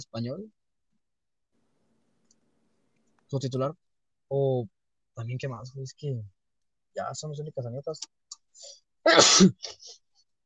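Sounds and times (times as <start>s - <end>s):
speech: 0.0s - 0.6s, 3.3s - 6.4s, 7.0s - 10.0s
breathing: 8.5s - 8.9s
person sneezing: 9.1s - 10.0s.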